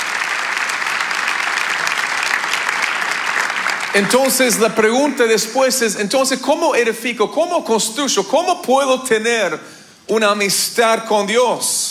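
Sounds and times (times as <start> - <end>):
audience applause: 0.0 - 5.6
speech: 3.9 - 11.8.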